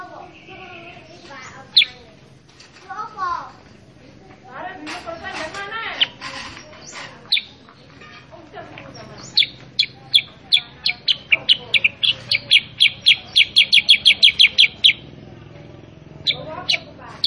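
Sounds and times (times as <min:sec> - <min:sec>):
sooty-headed bulbul song: 0:00.2 - 0:02.2, 0:08.8 - 0:17.2.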